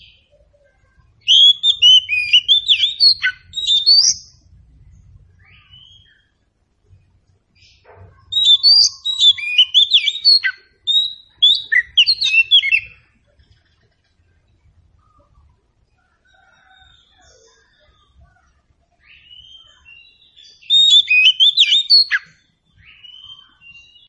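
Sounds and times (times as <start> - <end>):
Oriental magpie-robin song: 0.0 - 4.5, 5.4 - 6.4, 7.6 - 24.0
low rumble: 4.3 - 5.5.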